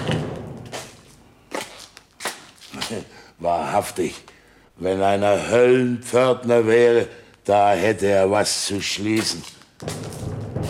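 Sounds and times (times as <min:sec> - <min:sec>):
speech: 0:02.9 - 0:10.0
knocking: 0:09.2 - 0:10.6.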